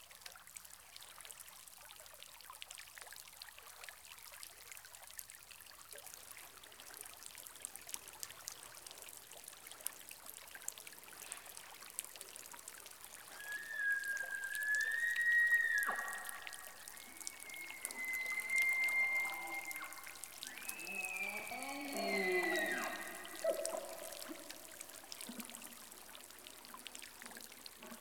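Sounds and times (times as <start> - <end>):
elk in rainforest: 13.2 - 26.2.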